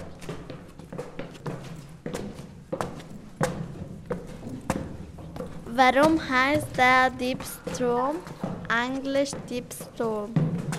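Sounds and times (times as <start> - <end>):
footsteps of people climbing stairs inside the Diebsturm tower: 0.0 - 10.7
speech: 5.8 - 10.5.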